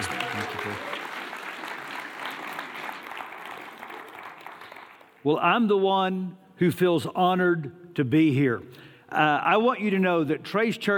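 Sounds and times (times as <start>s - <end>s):
church congregation applauding a guest speaker: 0.0s - 5.3s
speech: 5.2s - 10.9s.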